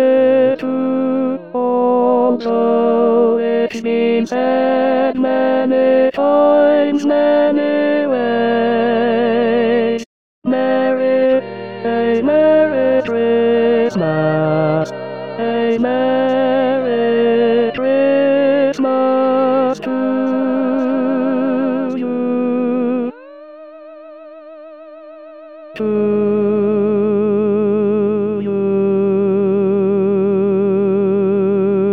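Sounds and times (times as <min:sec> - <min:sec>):
tenor voice singing Christmas rehearsal track: 0:00.0 - 0:23.2, 0:25.8 - 0:31.8.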